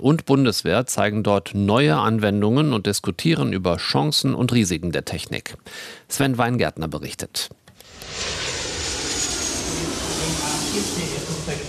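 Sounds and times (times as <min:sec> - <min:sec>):
speech: 0:00.0 - 0:08.4
airliners taking off and landing outside: 0:07.8 - 0:11.6.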